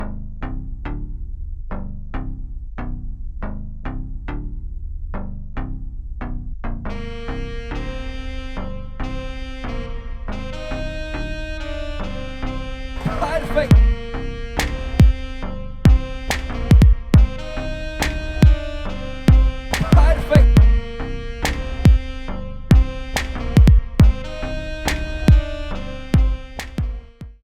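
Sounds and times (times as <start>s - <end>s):
jazzy music: 12.9s - 27.3s.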